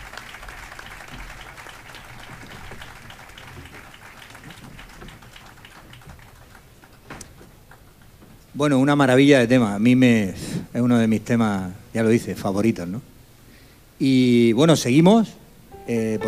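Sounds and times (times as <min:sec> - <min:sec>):
audience applause: 0:00.0 - 0:07.1
speech: 0:08.6 - 0:13.1, 0:14.0 - 0:16.2.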